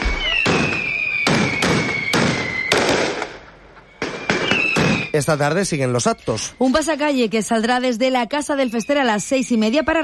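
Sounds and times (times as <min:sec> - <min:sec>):
steady high whistle: 0:00.0 - 0:02.8, 0:03.8 - 0:05.3, 0:08.5 - 0:09.6
aerial fireworks bursting: 0:00.0 - 0:05.4
speech: 0:05.2 - 0:10.0.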